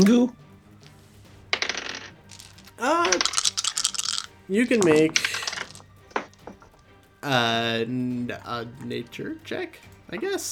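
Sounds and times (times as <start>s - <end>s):
speech: 0.0s - 0.4s, 2.8s - 3.4s, 4.5s - 5.2s, 7.2s - 10.5s
dice rolling on a table: 0.0s - 6.8s.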